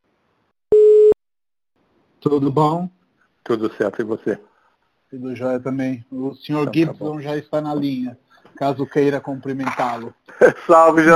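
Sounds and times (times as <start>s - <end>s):
telephone tone as a call is placed: 0.7s - 1.2s
speech: 2.2s - 4.5s, 5.1s - 11.1s
laughter: 8.3s - 11.0s.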